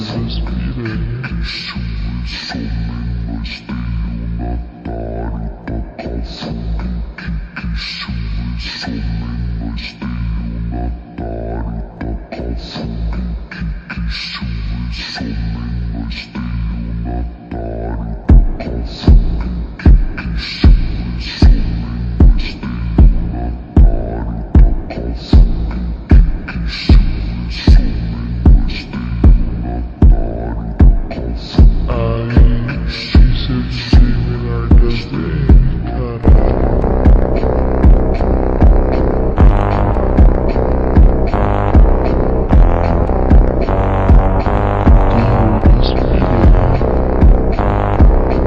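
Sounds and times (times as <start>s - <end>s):
slowed beat: 18.3s - 48.4s.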